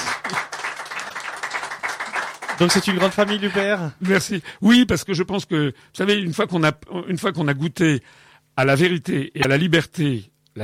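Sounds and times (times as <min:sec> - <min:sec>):
studio audience applauding: 0:00.0 - 0:04.2
speech: 0:02.6 - 0:10.6.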